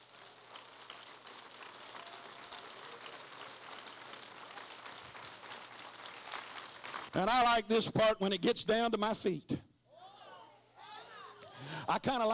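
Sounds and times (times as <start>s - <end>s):
audience clapping: 0.0s - 7.6s
speech: 7.1s - 9.6s, 11.9s - 12.3s.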